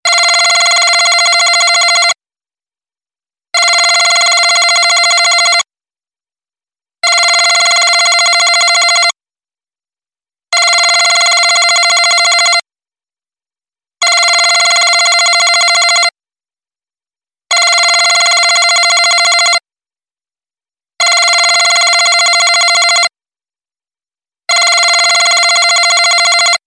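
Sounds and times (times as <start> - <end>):
old phone ringing: 0.1 - 2.2, 3.6 - 5.7, 7.0 - 9.2, 10.5 - 12.6, 14.0 - 16.2, 17.5 - 19.6, 21.0 - 23.1, 24.5 - 26.6.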